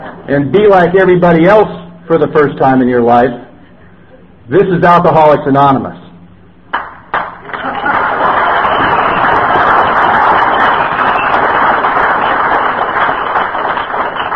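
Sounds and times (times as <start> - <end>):
speech: 0.3 - 3.4, 4.5 - 6.0
audience applause: 6.7 - 14.3.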